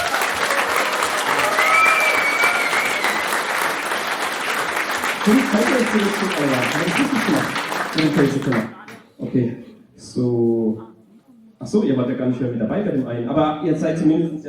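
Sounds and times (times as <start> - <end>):
audience applause: 0.0 - 8.9
speech: 5.2 - 10.9, 11.6 - 14.4.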